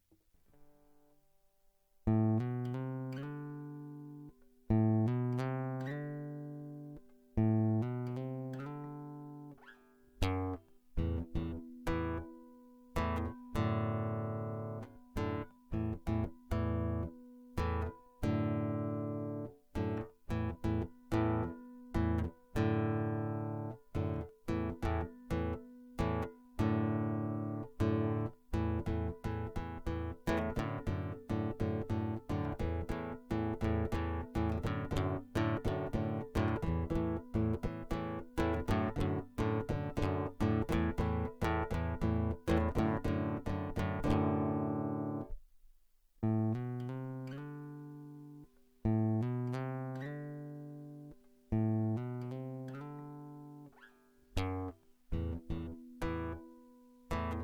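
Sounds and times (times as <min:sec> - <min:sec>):
guitar loop: 0:02.1 - 0:45.4, 0:46.2 - 0:57.4.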